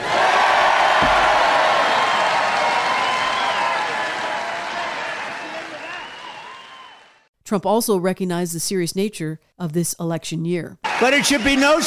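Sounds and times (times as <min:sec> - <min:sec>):
crowd applause and cheering: 0:00.0 - 0:07.3, 0:10.8 - 0:11.8
speech: 0:07.5 - 0:11.8.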